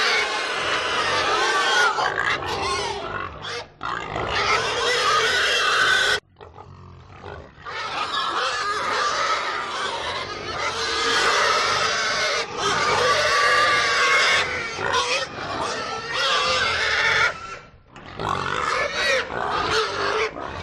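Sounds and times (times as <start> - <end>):
pig herd grunting: 0.0 - 20.6.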